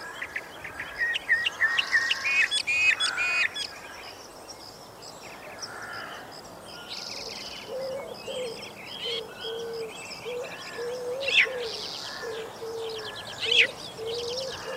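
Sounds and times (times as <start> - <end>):
backyard birds: 0.0 - 14.7.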